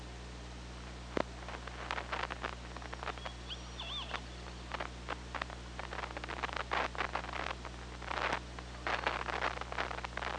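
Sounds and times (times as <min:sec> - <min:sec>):
steady low hum: 0:00.0 - 0:10.3
killer whale rising whistled call: 0:03.2 - 0:04.6.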